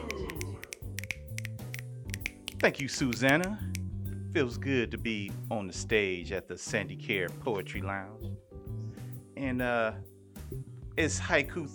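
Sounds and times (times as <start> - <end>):
audience finger snapping: 0.0 - 3.9
speech: 2.6 - 3.8, 4.4 - 8.4, 9.4 - 11.7.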